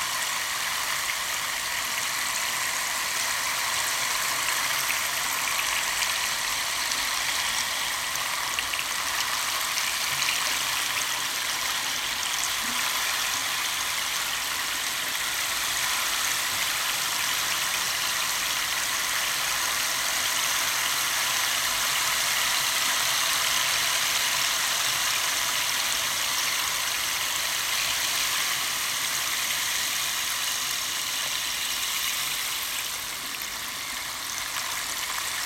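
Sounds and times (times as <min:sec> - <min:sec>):
rainstick for guided meditation: 0:00.0 - 0:35.4.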